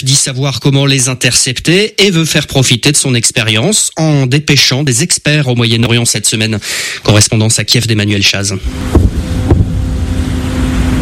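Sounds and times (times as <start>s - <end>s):
speech: 0.0s - 9.5s
kamikaze drone buzzing over Kyiv: 8.6s - 10.9s.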